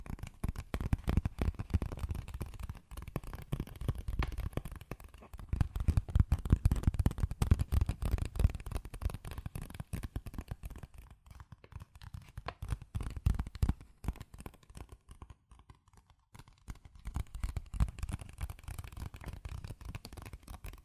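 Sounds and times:
fast tapping, scratching and tracing on cardboard and paper: 0.0s - 20.8s.

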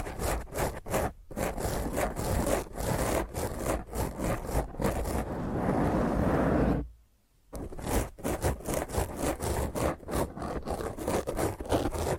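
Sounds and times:
fingernails scratching a microphone: 0.0s - 6.9s, 7.6s - 12.1s.

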